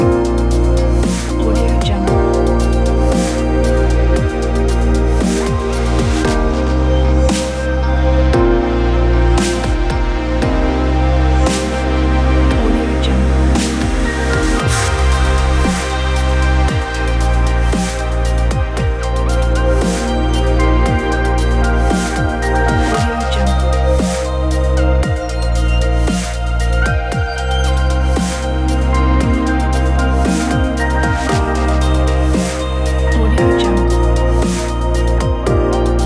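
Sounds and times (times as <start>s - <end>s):
atmospheric electronic chill music: 0.0s - 36.0s.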